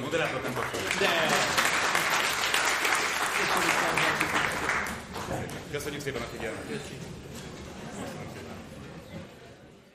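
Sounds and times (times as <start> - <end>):
audience applause: 0.2 - 5.5
speech: 5.7 - 7.4.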